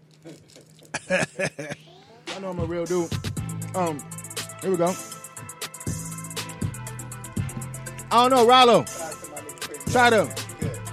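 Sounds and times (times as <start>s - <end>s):
chewing chocolate malted milk balls: 0.0s - 1.2s
speech: 0.2s - 1.8s, 2.4s - 5.2s, 8.1s - 9.0s, 9.9s - 10.4s
laughter: 1.0s - 1.8s.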